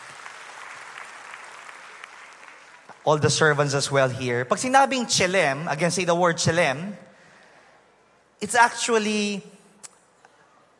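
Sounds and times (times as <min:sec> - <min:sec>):
audience applauding a tech team at a talk: 0:00.0 - 0:03.1
speech: 0:03.0 - 0:07.1, 0:08.4 - 0:09.6.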